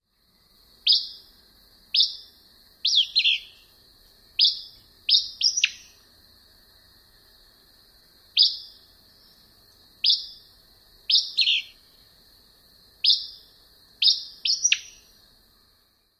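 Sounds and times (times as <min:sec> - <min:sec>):
Acadian Flycatcher twilight song: 0:00.8 - 0:01.3, 0:01.9 - 0:06.1, 0:08.3 - 0:12.1, 0:13.0 - 0:15.3.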